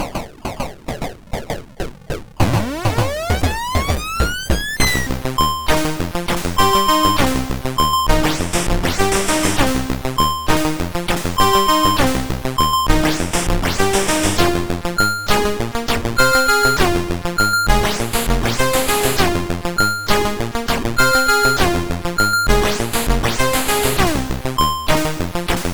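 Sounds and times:
synth: 0.0 - 25.7.

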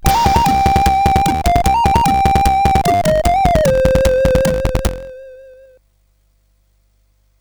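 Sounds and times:
SID chiptune music on a CSG8580R5 chip: 0.0 - 5.7.

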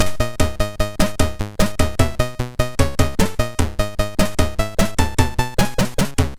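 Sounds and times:
MOS6581R3 SID chip music: 0.0 - 6.3.

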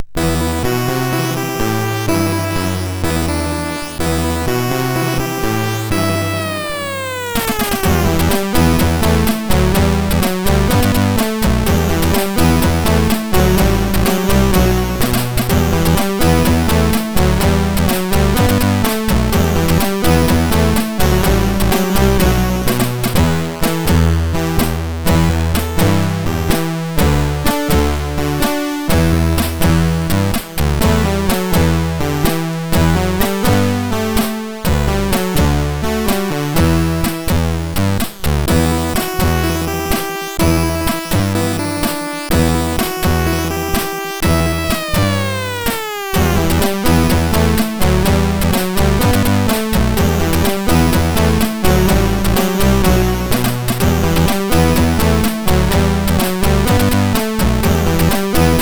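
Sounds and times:
MOS6581 SID chip synth sound: 0.2 - 58.6.

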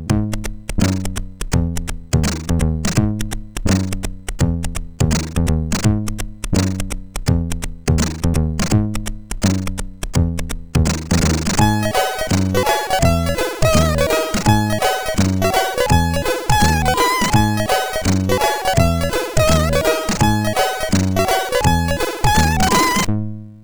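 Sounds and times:
MOS6581 SID chip synth sound: 0.1 - 23.1.

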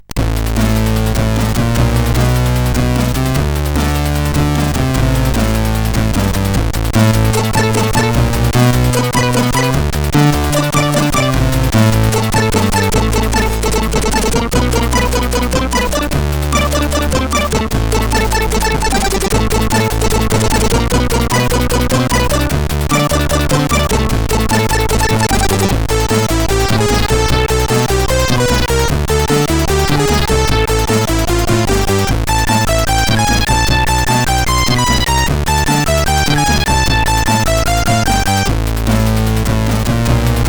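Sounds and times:
tune on CSG8580R5 chip: 0.0 - 40.4.

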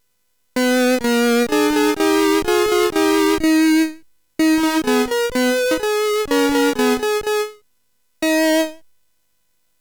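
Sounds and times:
SID CSG8580 chip music: 0.6 - 3.8, 4.4 - 7.6, 8.2 - 8.8.

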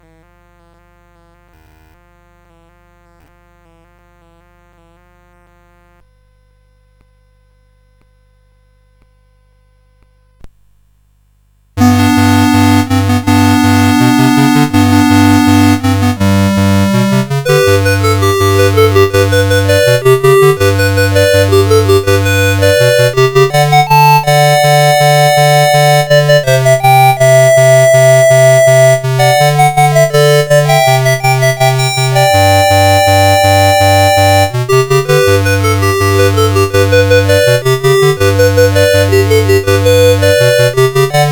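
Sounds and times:
squeeze box chiptune music on CSG8580R5 SID chip: 11.8 - 41.3.

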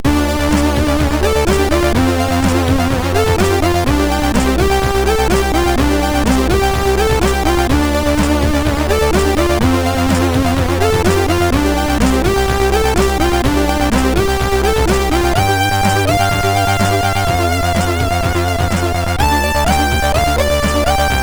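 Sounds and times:
beat on MOS6581R4 chip: 0.0 - 21.2.

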